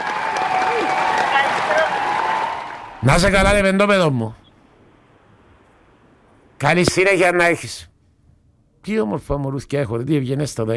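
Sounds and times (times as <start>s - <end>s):
audience applause for a guest: 0.0s - 3.4s
speech: 3.0s - 4.4s, 6.6s - 7.9s, 8.8s - 10.7s.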